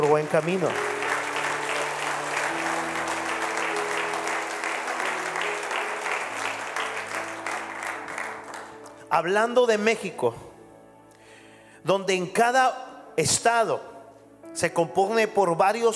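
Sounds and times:
crowd applause: 0:00.0 - 0:09.0
sustained musical tone: 0:00.0 - 0:11.3
speech: 0:00.1 - 0:00.9, 0:09.1 - 0:10.5, 0:11.8 - 0:13.9, 0:14.6 - 0:15.9.

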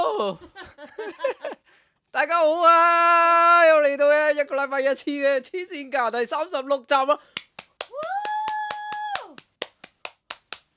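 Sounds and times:
speech: 0:00.2 - 0:01.4, 0:02.2 - 0:07.4
hand slapping own thigh: 0:07.3 - 0:10.7.

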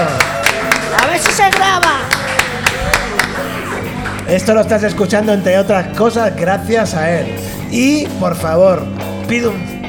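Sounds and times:
applause: 0:00.1 - 0:03.0
speech: 0:04.3 - 0:09.7.

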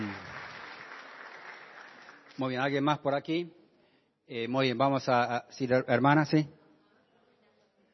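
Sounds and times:
audience applauding: 0:00.0 - 0:02.6
speech: 0:02.4 - 0:03.6, 0:04.3 - 0:06.6.

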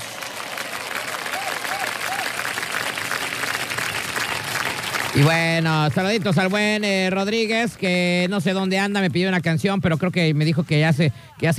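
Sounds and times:
applause sound effect: 0:00.0 - 0:06.6
speech: 0:05.2 - 0:11.5.

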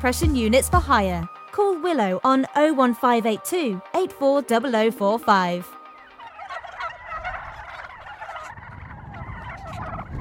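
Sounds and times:
speech: 0:00.0 - 0:05.8
flock of turkeys gobbling: 0:04.5 - 0:10.1.

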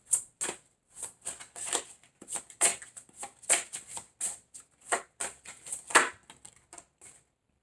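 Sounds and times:
tarot cards shuffled during a Libra reading: 0:00.1 - 0:07.2.

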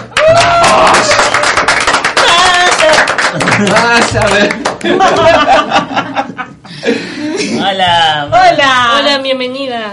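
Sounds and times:
applause: 0:00.0 - 0:05.4
laughter: 0:02.3 - 0:07.8
speech: 0:03.6 - 0:06.4, 0:07.6 - 0:09.9.

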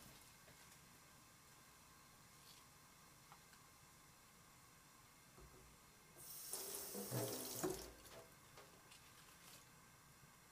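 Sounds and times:
running water while dishwashing after a meal: 0:06.2 - 0:08.2.

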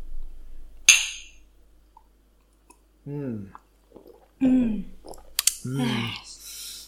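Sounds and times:
two drinking glasses of water clinking: 0:00.9 - 0:01.4
speech: 0:03.1 - 0:03.6, 0:04.4 - 0:04.9, 0:05.6 - 0:06.3.

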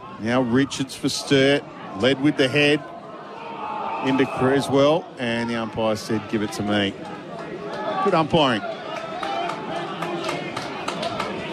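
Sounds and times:
speech: 0:00.2 - 0:02.9, 0:04.0 - 0:07.2, 0:08.0 - 0:08.8
crowd shouting and clapping: 0:03.3 - 0:11.5.

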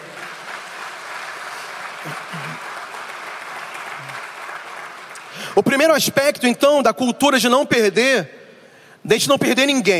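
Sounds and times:
audience applauding loudly: 0:00.0 - 0:05.9
speech: 0:02.0 - 0:02.7, 0:05.3 - 0:08.4, 0:09.0 - 0:09.9.

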